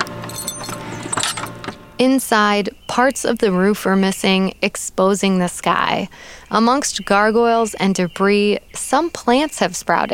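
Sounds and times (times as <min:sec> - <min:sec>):
keys jangling while unlocking a door: 0:00.0 - 0:01.8
speech: 0:02.0 - 0:10.1.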